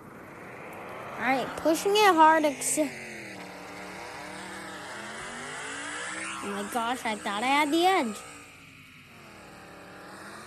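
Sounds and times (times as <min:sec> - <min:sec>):
car engine in an AR racing video game: 0:00.0 - 0:10.4
speech: 0:01.2 - 0:03.0, 0:06.5 - 0:08.3.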